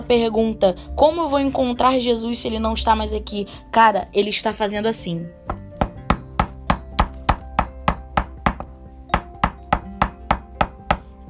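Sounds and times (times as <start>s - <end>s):
speech: 0.1s - 5.6s
knocking on a door: 5.5s - 11.1s.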